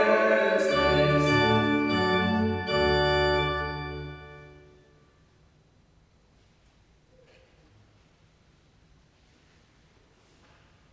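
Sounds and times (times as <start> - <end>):
choral mass music in D major: 0.0 - 4.9.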